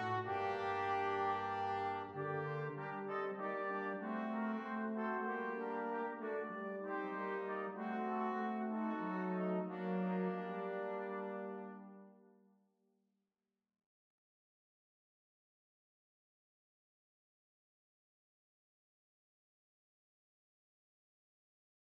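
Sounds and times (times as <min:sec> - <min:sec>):
brass quintet: 0:00.0 - 0:12.4.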